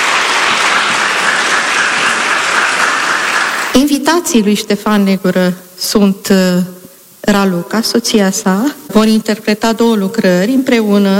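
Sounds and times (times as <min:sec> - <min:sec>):
audience applauding orchestra: 0:00.0 - 0:03.8
speech: 0:03.8 - 0:11.1.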